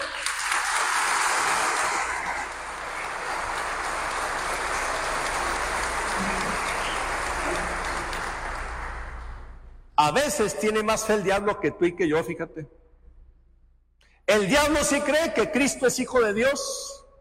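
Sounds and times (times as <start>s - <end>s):
applause: 0.0s - 9.8s
speech: 10.0s - 12.8s, 14.3s - 16.9s.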